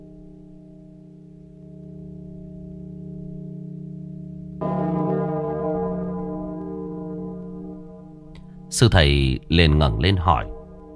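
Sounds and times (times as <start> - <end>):
deep resonant pagoda bell struck late at night: 1.6 - 10.9
speech: 8.7 - 10.6.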